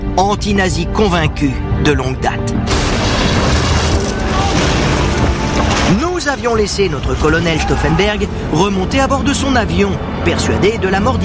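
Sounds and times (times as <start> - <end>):
speech: 0.2 - 2.7, 5.9 - 11.2
bomb explosion: 2.7 - 7.4.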